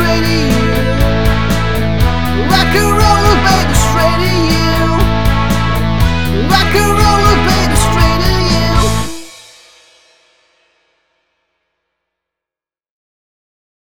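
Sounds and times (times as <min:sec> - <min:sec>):
rock music: 0:00.0 - 0:10.0.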